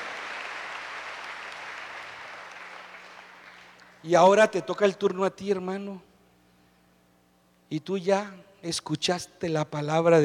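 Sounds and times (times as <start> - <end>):
audience applause: 0.0 - 4.0
speech: 4.0 - 6.1, 7.7 - 10.2.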